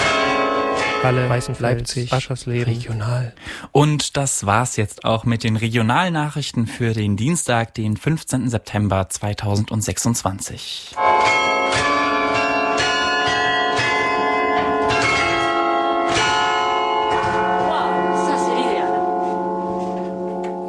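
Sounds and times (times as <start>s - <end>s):
church bells of Halle ringing: 0.0s - 2.9s, 11.0s - 20.6s
speech: 1.0s - 11.9s.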